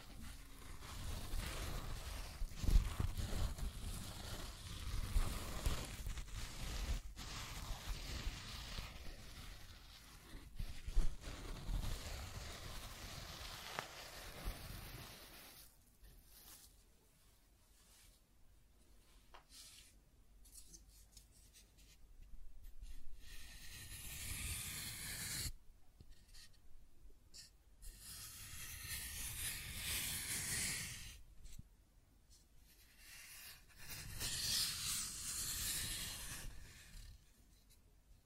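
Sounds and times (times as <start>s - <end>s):
scratching and tracing: 0.0s - 15.7s, 23.2s - 26.5s, 27.4s - 31.2s, 32.7s - 37.7s.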